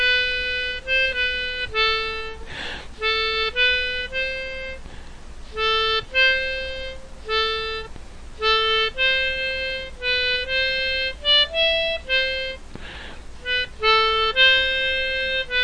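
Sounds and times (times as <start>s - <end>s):
derpy melodica melody: 0.0s - 15.6s.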